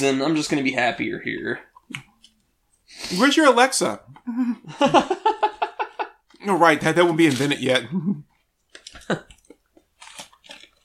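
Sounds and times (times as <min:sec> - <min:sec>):
speech: 0:00.0 - 0:02.1, 0:02.9 - 0:05.2, 0:06.4 - 0:08.3, 0:09.1 - 0:09.3
laughter: 0:04.3 - 0:06.2
biting and chewing a thick cookie: 0:08.6 - 0:10.8.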